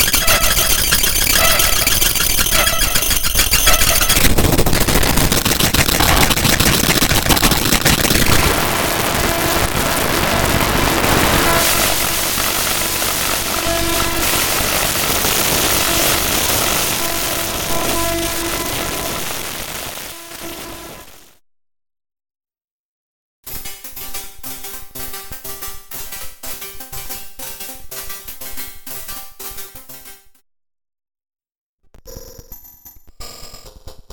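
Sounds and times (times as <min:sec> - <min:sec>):
L-system synthesized sonorities: 0:00.0 - 0:21.2.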